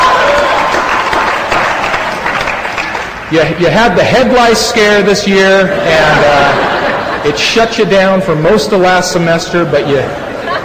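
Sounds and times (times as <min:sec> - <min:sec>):
graduation audience clapping: 0:00.0 - 0:03.6
speech: 0:03.3 - 0:10.2
laughter: 0:05.0 - 0:10.6.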